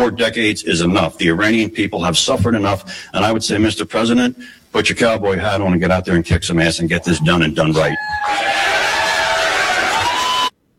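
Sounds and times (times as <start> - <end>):
speech: 0.0 - 8.8
crowd cheering wildly: 7.1 - 10.6.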